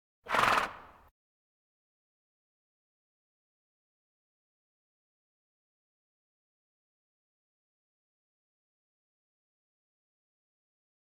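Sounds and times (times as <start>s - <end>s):
farm animal snorts: 0.3s - 1.0s.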